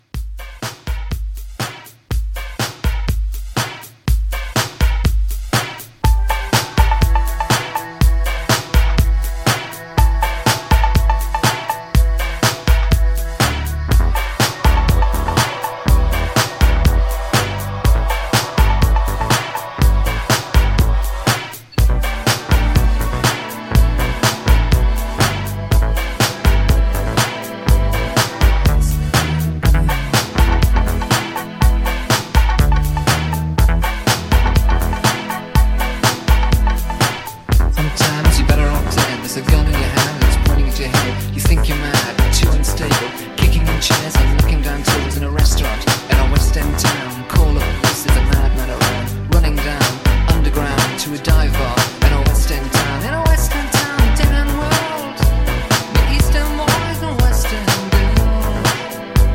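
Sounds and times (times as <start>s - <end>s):
clean 1980s pop drum beat: 0.0s - 59.3s.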